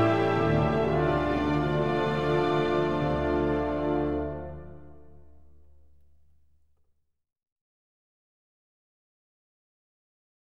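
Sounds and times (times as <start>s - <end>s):
symphony orchestra playing a dance in D minor: 0.0s - 6.1s.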